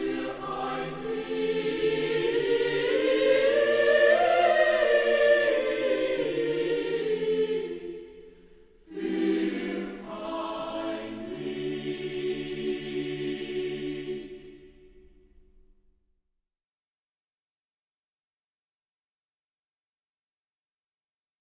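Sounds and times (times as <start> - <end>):
choir singing: 0.0 - 15.3.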